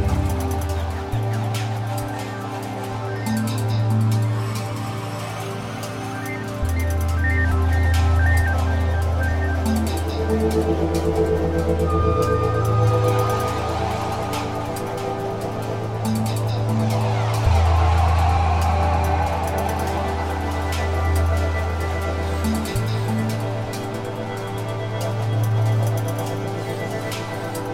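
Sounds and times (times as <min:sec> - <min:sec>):
energizing ambience: 0:00.0 - 0:27.7.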